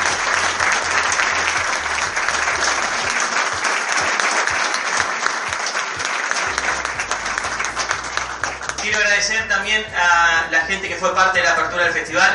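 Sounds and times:
audience applause: 0.0s - 9.2s
speech: 9.2s - 12.3s.

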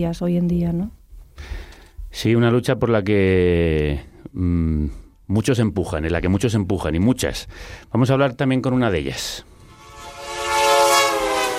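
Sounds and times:
speech: 0.0s - 9.5s
train horn: 9.6s - 11.5s.

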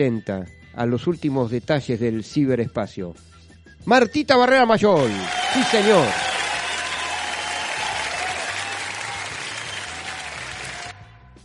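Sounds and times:
speech: 0.0s - 6.3s
audience applause: 5.0s - 11.0s.

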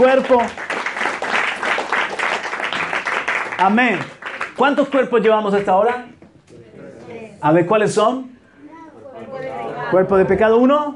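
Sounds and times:
speech: 0.0s - 0.6s, 3.6s - 6.2s, 7.4s - 8.3s, 9.4s - 10.9s
audience applauding: 0.0s - 5.1s.

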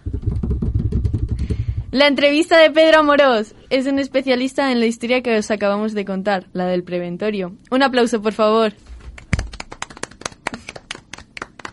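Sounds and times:
drum roll: 0.0s - 2.1s
speech: 1.9s - 8.9s.

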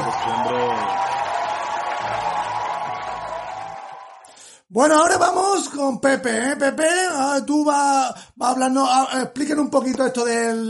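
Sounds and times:
audience applause: 0.0s - 4.3s
speech: 0.2s - 0.6s, 4.8s - 10.6s.

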